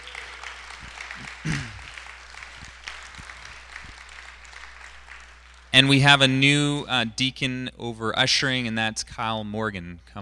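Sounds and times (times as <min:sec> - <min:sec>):
audience applause: 0:00.0 - 0:05.9
speech: 0:01.4 - 0:01.7, 0:05.8 - 0:10.1.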